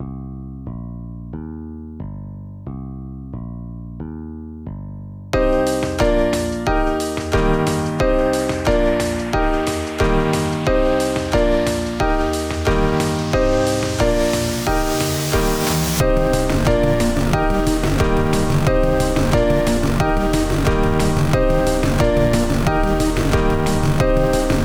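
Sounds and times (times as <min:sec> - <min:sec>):
silly instrumental music: 0:05.4 - 0:24.6.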